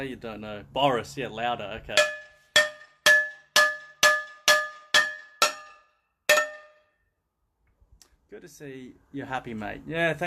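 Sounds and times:
speech: 0:00.0 - 0:02.2, 0:08.3 - 0:10.2
hammer banging on a frying pan: 0:02.0 - 0:06.8.

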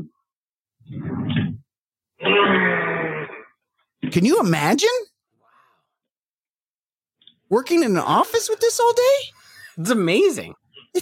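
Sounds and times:
speech: 0:02.2 - 0:02.9, 0:04.0 - 0:05.1, 0:07.5 - 0:11.0
man imitating a horse whinny: 0:02.2 - 0:03.5
short rough throat-clearing: 0:02.2 - 0:03.6.

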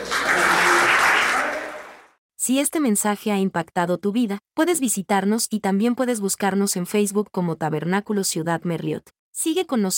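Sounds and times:
crowd applause: 0:00.0 - 0:02.1
speech: 0:02.5 - 0:09.9.

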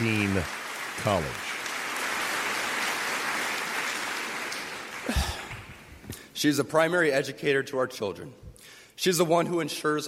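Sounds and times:
sustained audience applause at Benedictine College commencement: 0:00.0 - 0:06.0
speech: 0:00.4 - 0:01.5, 0:05.1 - 0:05.3, 0:06.4 - 0:10.0.

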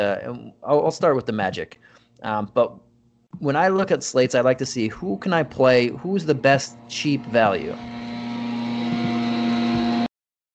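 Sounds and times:
speech: 0:00.0 - 0:08.0
hedge trimming outside: 0:05.0 - 0:10.1
lawn mowing outside: 0:06.4 - 0:10.1.

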